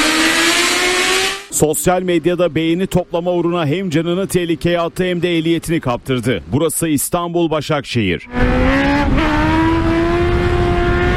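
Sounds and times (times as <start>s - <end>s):
motorcycle engine during a wheelie on a road in Başakşehir, Istanbul: 0.0s - 1.8s, 8.2s - 11.1s
speech: 1.6s - 9.4s.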